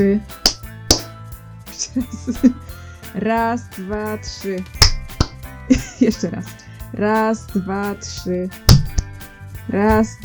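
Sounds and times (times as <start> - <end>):
speech: 0.0 - 0.4, 1.9 - 4.8, 5.7 - 8.7, 9.7 - 10.2
hand clap on a count of three: 0.3 - 2.6, 3.7 - 5.9, 8.6 - 10.2.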